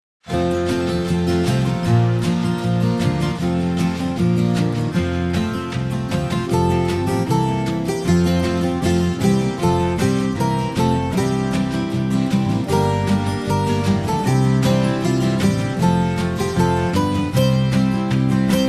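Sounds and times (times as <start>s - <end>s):
backing music: 0.2s - 18.6s.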